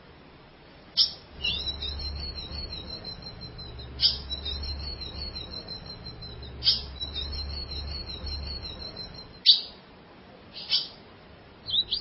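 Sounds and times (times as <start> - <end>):
ultramarine grosbeak singing a warbling phrase: 1.0 - 9.8, 11.7 - 11.9.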